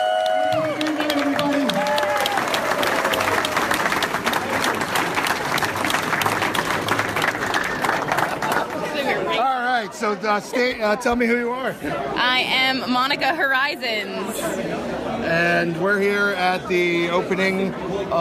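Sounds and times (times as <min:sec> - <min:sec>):
audience clapping and cheering at Rolly Crump exhibit opening: 0:00.0 - 0:09.3
speech: 0:10.0 - 0:18.1.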